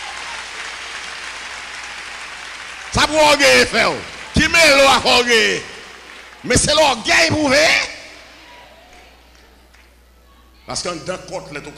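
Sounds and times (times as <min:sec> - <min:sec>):
applause for Jesus Christ during a church service: 0:00.0 - 0:07.4, 0:08.9 - 0:10.0
speech: 0:02.9 - 0:05.7, 0:06.4 - 0:07.9, 0:10.7 - 0:11.7.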